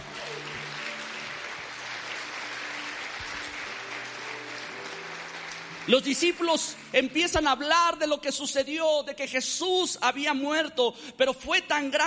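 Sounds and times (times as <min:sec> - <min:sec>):
audience applause: 0:00.0 - 0:07.0
speech: 0:05.9 - 0:12.0.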